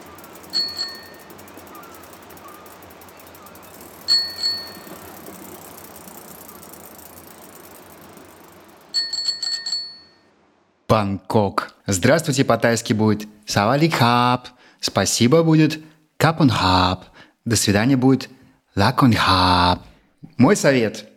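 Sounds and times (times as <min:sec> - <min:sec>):
rented bicycle bell ringing: 0:00.0 - 0:10.3
low rumble of bicycle riding noise: 0:00.0 - 0:10.7
speech: 0:10.9 - 0:21.1.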